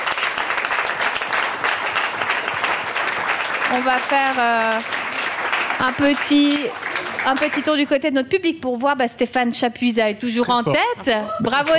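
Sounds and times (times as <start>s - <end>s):
audience applause for a guest: 0.0s - 7.9s
speech: 3.7s - 5.0s, 5.8s - 11.7s
laughter: 10.5s - 11.7s.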